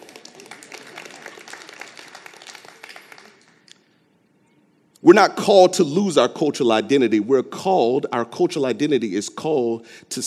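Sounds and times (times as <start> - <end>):
audience clapping: 0.0 - 3.8
speech: 5.0 - 10.2.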